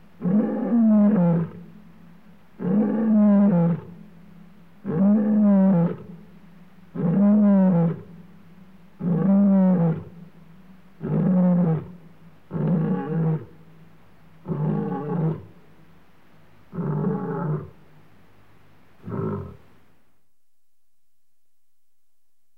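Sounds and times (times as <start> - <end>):
male lion roaring: 0.2 - 1.6, 2.6 - 3.9, 4.8 - 6.1, 6.9 - 8.1, 9.0 - 10.1, 11.0 - 13.5, 14.4 - 15.5, 16.7 - 17.8, 19.0 - 19.6.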